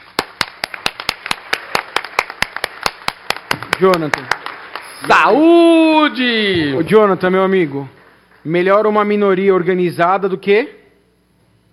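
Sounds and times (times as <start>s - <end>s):
sharp evenly spaced claps: 0.0s - 5.5s, 6.6s - 9.3s
speech: 3.8s - 4.4s, 5.0s - 10.8s.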